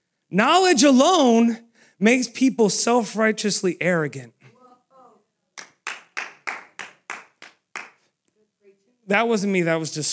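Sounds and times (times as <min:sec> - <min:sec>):
speech: 0:00.3 - 0:04.4, 0:09.1 - 0:10.1
audience clapping in unison: 0:05.6 - 0:08.1.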